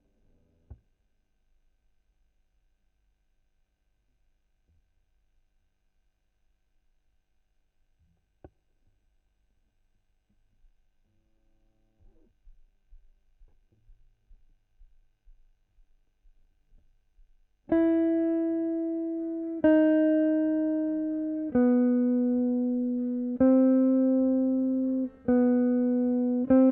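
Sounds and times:
guitar: 17.6s - 26.7s.

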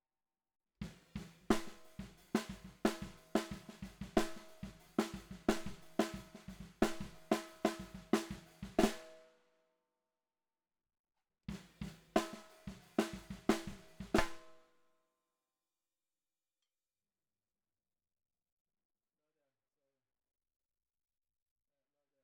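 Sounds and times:
bottom snare drum: 0.8s - 9.2s, 11.5s - 14.6s.

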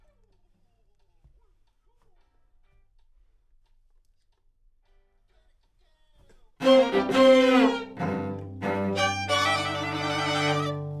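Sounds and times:
piano: 6.6s - 10.9s.

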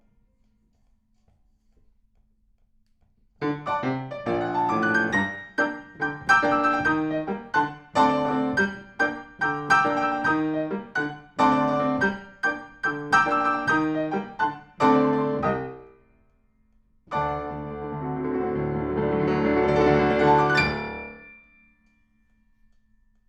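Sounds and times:
piano: 3.4s - 16.1s, 17.1s - 22.1s.

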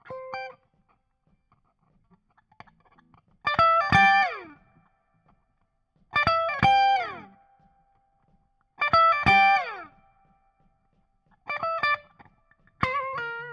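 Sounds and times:
guitar solo: 0.0s - 0.6s, 2.4s - 4.9s, 6.2s - 7.7s, 8.8s - 10.4s, 11.4s - 13.5s.

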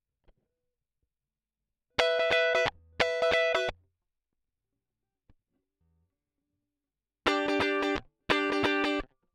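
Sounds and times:
guitar solo line: 2.0s - 3.7s, 7.3s - 9.0s.

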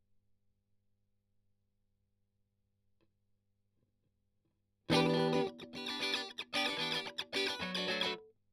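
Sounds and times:
strings strummed: 4.9s - 8.2s.

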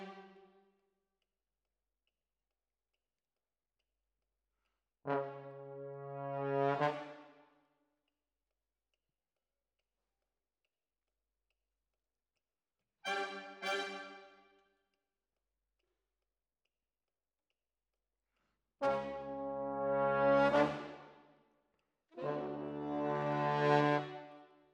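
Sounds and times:
trombones: 5.1s - 7.4s, 18.8s - 21.2s, 22.1s - 24.5s.

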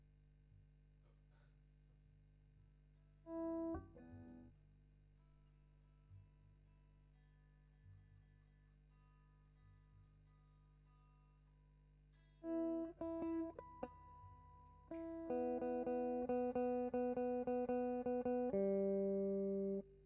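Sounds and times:
guitar: 3.3s - 4.5s, 12.4s - 20.0s.

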